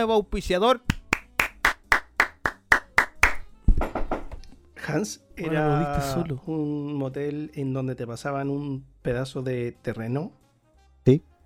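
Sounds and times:
speech: 0.0s - 1.0s, 4.8s - 10.4s, 11.1s - 11.3s
rhythmic hand claps: 0.8s - 3.5s
overlapping applause: 0.9s - 3.4s.

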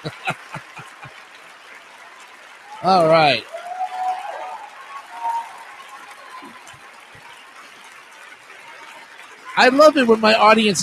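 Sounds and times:
speech: 0.0s - 0.3s, 2.8s - 3.5s, 9.6s - 10.8s
laughter: 0.0s - 1.2s
hand claps: 0.0s - 10.8s.

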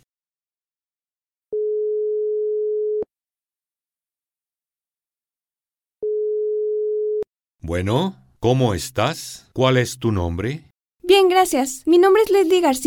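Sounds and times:
telephone line tone as a caller is connected: 1.5s - 3.1s, 6.0s - 7.3s
speech: 7.7s - 12.8s.

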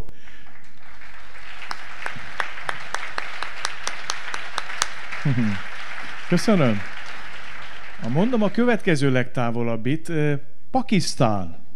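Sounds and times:
audience applause: 0.2s - 8.9s
laughter: 5.3s - 5.6s
speech: 5.3s - 5.7s, 6.3s - 6.9s, 8.0s - 11.6s.

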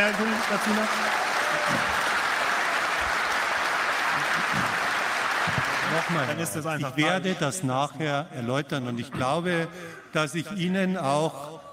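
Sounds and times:
speech: 0.0s - 2.1s, 5.9s - 11.7s
crowd applause: 0.0s - 6.6s.

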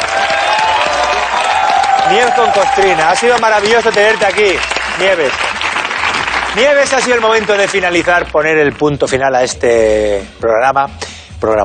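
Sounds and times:
audience applause: 0.0s - 8.4s
speech: 2.1s - 5.5s, 6.6s - 11.6s.

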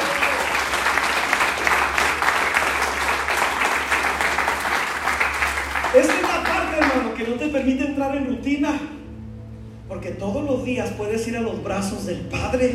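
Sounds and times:
audience applauding: 0.0s - 7.3s
speech: 7.5s - 9.0s, 9.9s - 12.7s.

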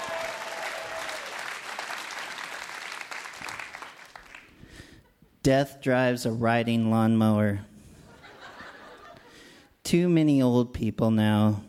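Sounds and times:
audience applause: 0.0s - 4.5s
speech: 5.4s - 7.7s, 9.9s - 11.6s
laughter: 8.0s - 9.4s.

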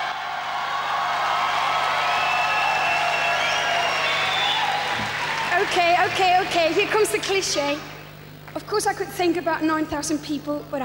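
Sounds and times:
crowd cheering for award winner: 0.0s - 7.8s
speech: 5.7s - 7.9s, 8.6s - 10.8s.

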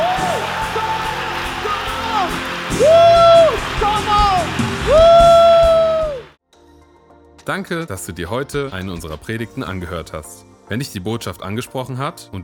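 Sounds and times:
audience applauding and cheering: 0.0s - 6.4s
speech: 7.5s - 12.4s.

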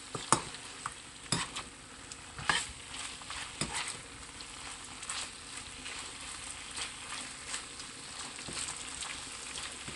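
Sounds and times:
chicken frying dry in a pan over a high gas flame: 0.0s - 9.9s
stirring scrapes and clatters in a pan: 1.3s - 1.7s, 2.4s - 9.9s.

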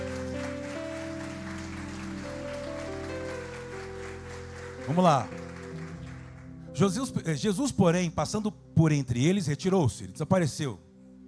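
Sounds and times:
audience applause: 0.0s - 6.6s
sustained keyboard chords: 0.0s - 11.2s
speech: 4.9s - 5.4s, 6.8s - 10.9s.

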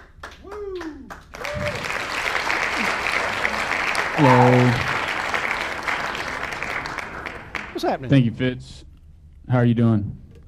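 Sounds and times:
room of people clapping for a congratulated colleague: 0.0s - 8.2s
speech: 4.2s - 4.9s, 7.8s - 8.9s, 9.5s - 10.2s.

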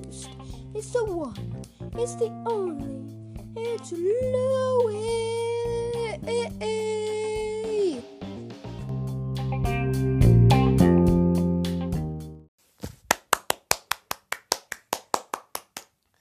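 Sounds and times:
short burst of music: 0.0s - 12.5s
speech: 0.2s - 3.1s, 3.8s - 5.4s, 6.3s - 7.0s
pair of hands clapping: 12.8s - 16.1s.

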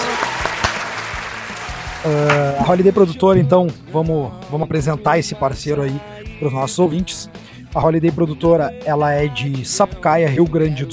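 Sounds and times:
applause: 0.0s - 2.7s
speech: 2.0s - 10.9s.

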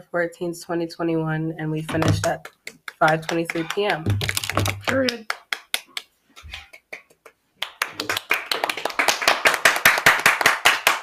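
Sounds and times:
speech: 0.1s - 5.4s
loud hand clap: 2.0s - 11.0s.

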